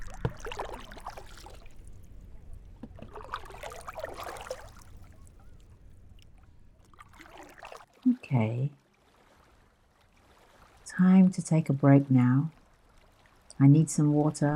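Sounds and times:
water swishing and gurgling along a rowboat hull: 0.0 - 14.5
speech: 8.3 - 8.8, 11.0 - 12.6, 13.6 - 14.5.

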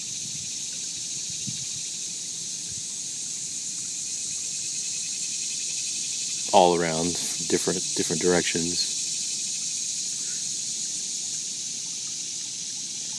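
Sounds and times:
insects chirping by scratching legs: 0.0 - 13.1
water murmuring: 6.5 - 8.9
speech: 6.5 - 9.0.

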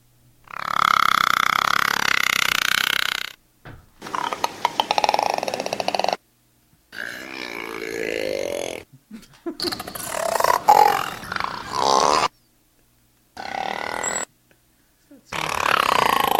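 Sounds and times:
voice imitating a creaking door: 0.5 - 6.2, 6.9 - 8.9, 9.6 - 12.3, 13.4 - 14.3, 15.3 - 16.3.

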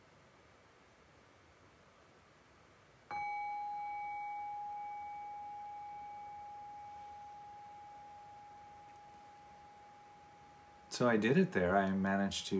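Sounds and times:
meditation bell ringing: 3.1 - 11.5
speech: 11.0 - 12.5.

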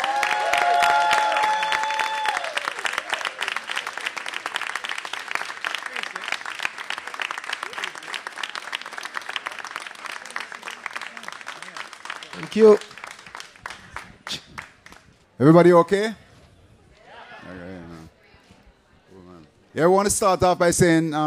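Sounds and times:
crowd cheering and whistling: 0.0 - 3.9
crowd applause: 0.0 - 15.0
speech: 12.6 - 12.9, 15.4 - 16.2, 19.8 - 21.2.

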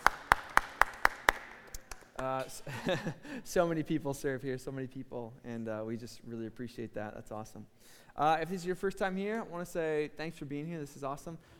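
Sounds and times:
church congregation clapping for volunteers: 0.0 - 2.4
speech: 2.2 - 11.5.

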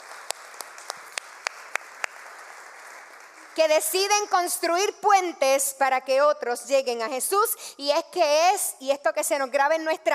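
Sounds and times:
crowd applause: 0.0 - 3.6
speech: 3.6 - 10.1.

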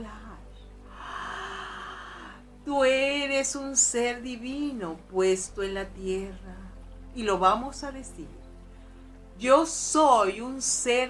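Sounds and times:
faint low drone: 0.0 - 3.4, 4.3 - 9.8
long slow exhaled breath during a guided meditation: 0.9 - 2.6
speech: 2.7 - 8.4, 9.4 - 11.0.

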